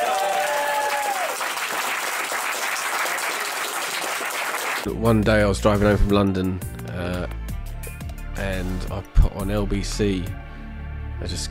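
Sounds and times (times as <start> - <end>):
audience round of applause: 0.0 - 4.9
speech: 4.8 - 7.1, 8.6 - 10.4, 11.2 - 11.4.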